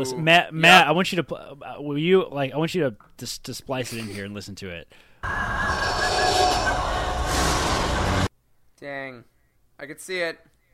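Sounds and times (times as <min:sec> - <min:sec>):
speech: 0:00.0 - 0:06.8, 0:08.8 - 0:10.5
ringing whistling sci-fi high sustained tones: 0:05.2 - 0:08.3.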